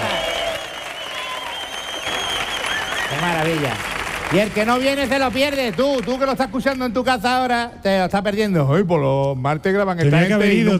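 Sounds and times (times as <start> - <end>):
studio audience clapping and cheering: 0.0 - 7.0
speech: 3.2 - 10.7.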